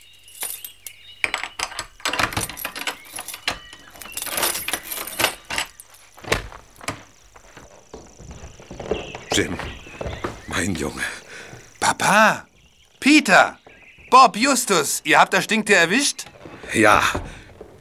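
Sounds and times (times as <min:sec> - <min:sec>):
keys jangling: 0:00.0 - 0:07.0
door opening: 0:00.4 - 0:10.9, 0:13.2 - 0:17.8
speech: 0:09.4 - 0:09.8, 0:10.6 - 0:11.2, 0:11.9 - 0:17.2.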